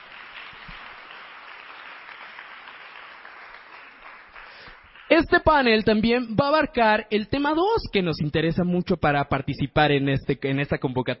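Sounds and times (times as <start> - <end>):
audience applause: 0.0 - 5.2
speech: 5.2 - 11.1.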